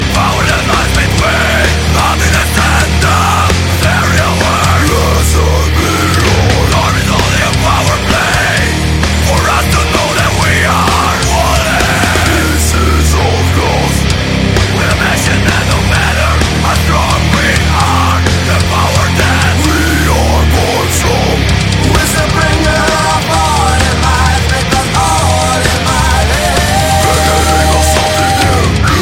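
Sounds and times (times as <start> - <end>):
Hungarian metalcore music: 0.0 - 29.0.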